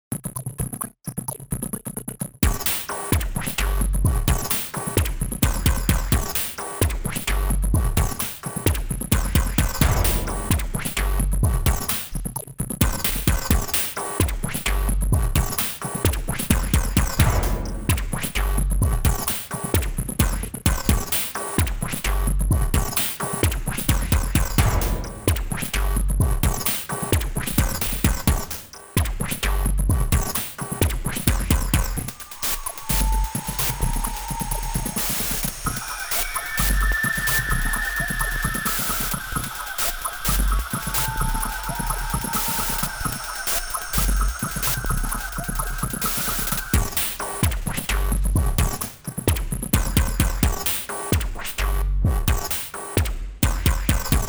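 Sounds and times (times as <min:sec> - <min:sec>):
galactic percussion: 0:02.4 - 0:54.2.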